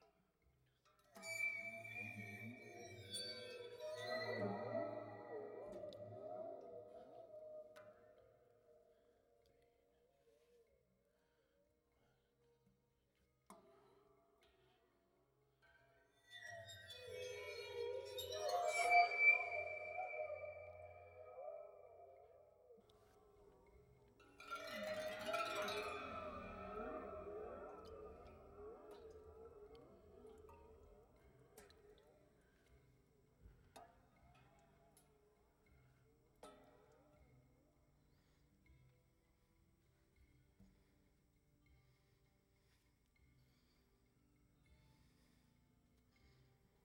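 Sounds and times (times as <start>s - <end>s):
waterphone: 1.1s - 8.2s, 16.2s - 33.0s.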